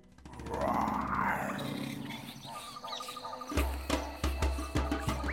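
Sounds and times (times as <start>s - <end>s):
lion roaring: 0.2s - 5.2s.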